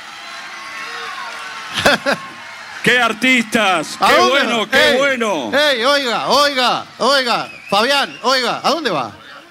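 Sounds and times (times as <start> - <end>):
audience applause: 0.0 - 9.2
laughter: 1.6 - 7.4
speech: 1.7 - 9.2.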